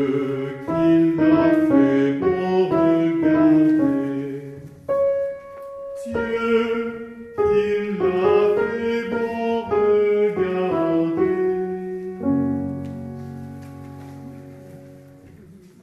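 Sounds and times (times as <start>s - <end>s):
altos singing: 0.0s - 5.2s, 5.8s - 12.3s.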